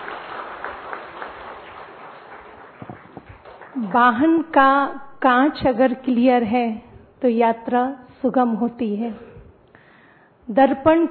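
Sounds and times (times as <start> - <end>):
audience clapping loudly: 0.0 - 4.4
speech: 3.8 - 9.3, 10.5 - 11.0.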